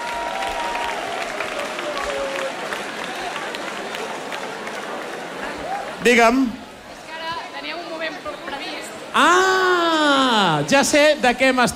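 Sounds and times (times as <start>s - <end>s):
audience applause and cheering: 0.0s - 6.1s
speech: 6.0s - 6.6s, 9.2s - 9.8s, 10.5s - 11.7s.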